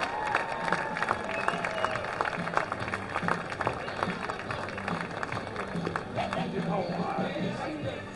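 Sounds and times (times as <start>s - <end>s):
baseball crowd applauding and cheering the South Bend Eastside All-Stars: 0.0s - 8.0s.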